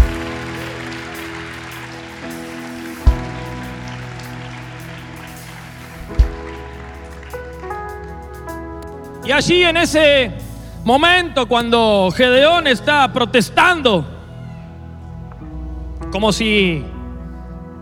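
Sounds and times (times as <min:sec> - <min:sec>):
loud applause from audience: 0:00.0 - 0:08.4
speech: 0:09.3 - 0:14.1, 0:16.1 - 0:16.9.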